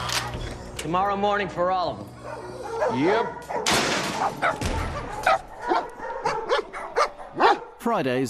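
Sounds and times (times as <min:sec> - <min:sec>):
speech: 0:00.8 - 0:05.4, 0:07.8 - 0:08.2
dogs barking in a pound: 0:02.1 - 0:07.8.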